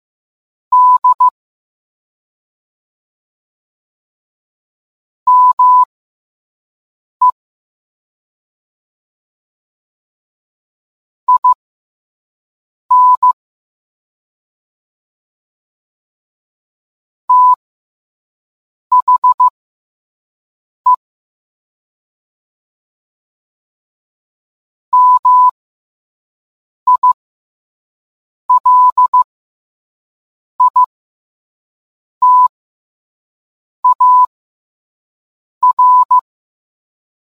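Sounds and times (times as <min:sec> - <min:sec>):
morse code beeps: 0:00.8 - 0:01.3, 0:05.3 - 0:05.9, 0:11.3 - 0:11.6, 0:12.9 - 0:13.4, 0:17.3 - 0:17.6, 0:18.9 - 0:19.5, 0:25.0 - 0:25.6, 0:26.9 - 0:27.2, 0:28.5 - 0:29.3, 0:30.6 - 0:30.9, 0:32.2 - 0:32.5, 0:33.8 - 0:34.3, 0:35.6 - 0:36.2.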